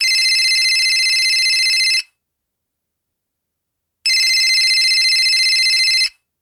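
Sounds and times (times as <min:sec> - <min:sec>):
Huawei Y6 90s classic electronic cellphone ringtone: 0:00.0 - 0:02.0, 0:04.1 - 0:06.1.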